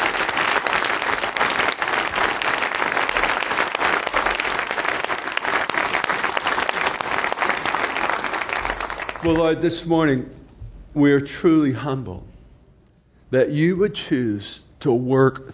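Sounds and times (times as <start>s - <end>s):
audience applause: 0.0s - 9.5s
speech: 9.3s - 12.3s, 13.3s - 15.5s.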